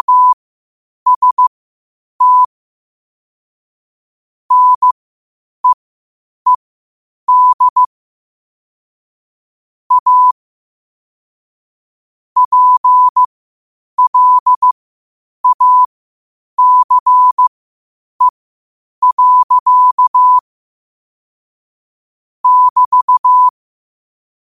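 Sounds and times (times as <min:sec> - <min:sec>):
morse code at 5 wpm: 0:00.0 - 0:00.4, 0:01.1 - 0:01.5, 0:02.2 - 0:02.5, 0:04.5 - 0:05.0, 0:07.3 - 0:07.9, 0:09.9 - 0:10.4, 0:12.4 - 0:13.3, 0:14.0 - 0:14.7, 0:15.4 - 0:15.9, 0:16.6 - 0:17.5, 0:19.0 - 0:20.4, 0:22.4 - 0:23.5.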